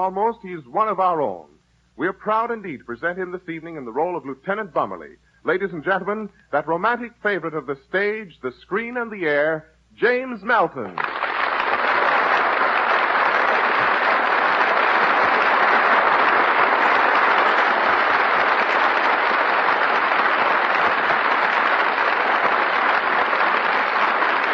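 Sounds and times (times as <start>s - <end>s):
speech: 0.0s - 11.1s
theater audience applause: 11.0s - 24.5s.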